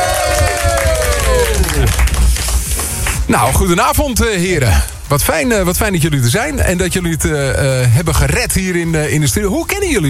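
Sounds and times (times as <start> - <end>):
audience applause: 0.0 - 3.2
speech: 3.3 - 10.0.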